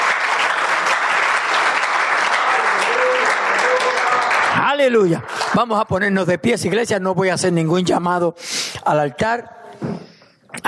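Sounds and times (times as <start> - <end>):
audience applause: 0.0 - 6.0
speech: 4.8 - 10.0.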